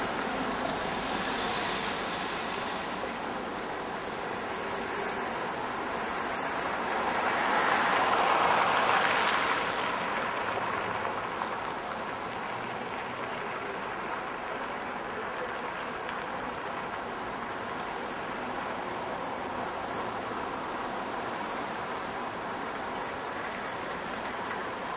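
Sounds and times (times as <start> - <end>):
cars and other vehicles driving by on road at 25 mph at town intersection: 0.0 - 24.9.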